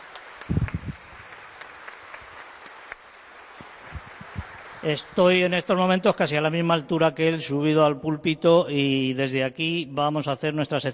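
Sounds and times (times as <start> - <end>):
audience applause for the organist: 0.0 - 5.5
speech: 4.8 - 10.9.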